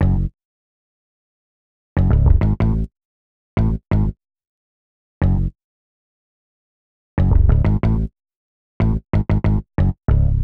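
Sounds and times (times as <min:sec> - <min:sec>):
synth bass: 0:00.0 - 0:00.3, 0:02.0 - 0:02.9, 0:07.2 - 0:08.1, 0:08.9 - 0:10.4.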